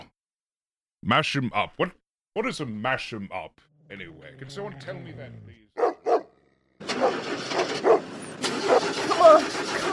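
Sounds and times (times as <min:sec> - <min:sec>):
speech: 0:01.0 - 0:05.8, 0:09.2 - 0:09.9
cartoon car engine cranking and struggling to start: 0:06.8 - 0:09.9.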